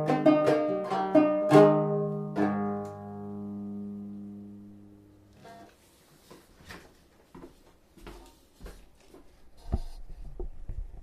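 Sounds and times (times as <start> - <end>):
banjo playing a hornpipe: 0.0 - 5.6.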